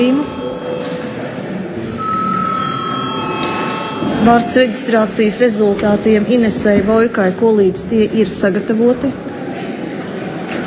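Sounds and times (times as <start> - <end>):
parliament session bell ringing: 0.0 - 5.3
murmur of the room: 0.0 - 10.6
speech: 4.2 - 9.3.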